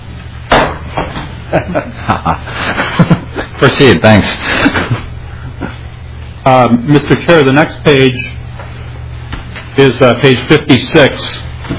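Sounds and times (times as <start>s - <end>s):
steady low hum: 0.0s - 11.7s
gavel strike: 0.5s - 1.2s
speech: 1.5s - 2.9s, 3.6s - 5.0s, 6.4s - 8.3s, 9.8s - 11.7s
laughter: 1.5s - 3.8s, 4.4s - 5.9s.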